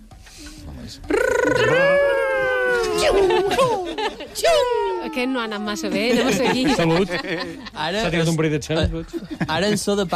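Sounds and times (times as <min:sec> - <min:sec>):
speech: 0:00.9 - 0:01.9, 0:03.0 - 0:10.1
voice imitating Sonic running very fast: 0:01.1 - 0:03.5
laughter: 0:01.2 - 0:05.1, 0:05.7 - 0:08.3, 0:09.0 - 0:10.1.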